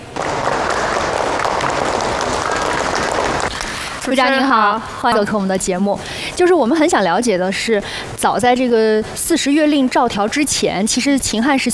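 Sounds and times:
audience applause: 0.0s - 4.1s
speech: 4.1s - 11.7s.

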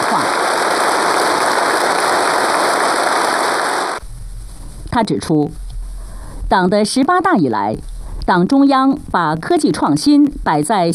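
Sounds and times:
enthusiastic applause from a large crowd: 0.0s - 4.0s
speech: 5.0s - 5.6s, 6.5s - 10.9s.

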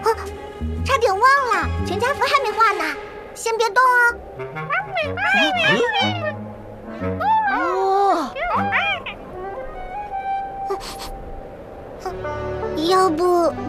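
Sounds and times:
speech: 0.6s - 6.3s, 12.1s - 13.6s
desert cat meowing: 4.7s - 6.4s, 7.2s - 9.8s.

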